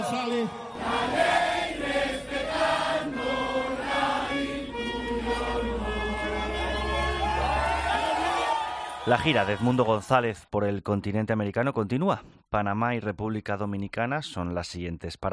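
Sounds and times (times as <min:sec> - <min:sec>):
crowd shouting: 0:00.0 - 0:09.8
speech: 0:00.1 - 0:01.4, 0:09.1 - 0:15.3
large crowd cheering and applauding: 0:04.9 - 0:10.3.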